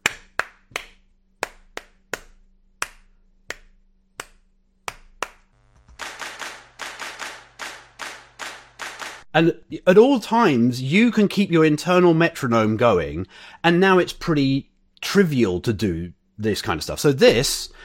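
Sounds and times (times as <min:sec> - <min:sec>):
hand clapping on the beat: 0:00.0 - 0:09.3
speech: 0:09.4 - 0:17.8.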